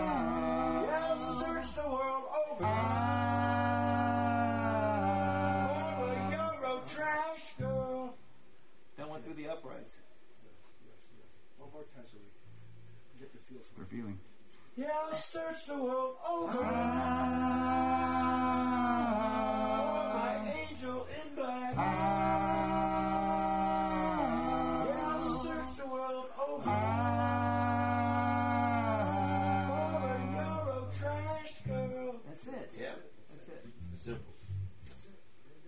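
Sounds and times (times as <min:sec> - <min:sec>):
Eurotrash vocals and harmonies: 0:00.0 - 0:08.3, 0:14.8 - 0:33.0.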